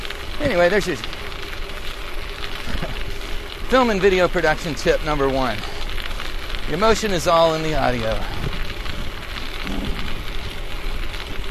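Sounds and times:
speech: 0.4 - 1.2, 3.7 - 5.7, 6.7 - 8.6
strong wind blowing while cycling outdoors: 2.6 - 11.4.

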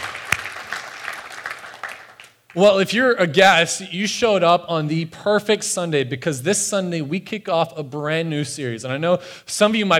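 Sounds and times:
audience applause: 0.0 - 2.3
speech: 2.5 - 9.9.

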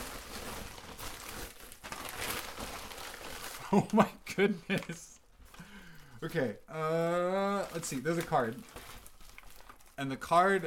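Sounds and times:
packaging crinkling and rustling as a very large package is torn open: 0.0 - 4.0, 7.6 - 10.6
speech: 3.7 - 5.1, 6.2 - 8.8, 10.0 - 10.6.

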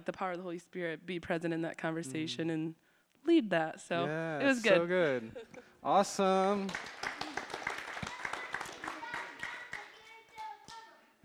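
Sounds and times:
speech: 0.0 - 7.0
group clapping: 6.4 - 11.2
excited voices cheering: 7.2 - 11.0.

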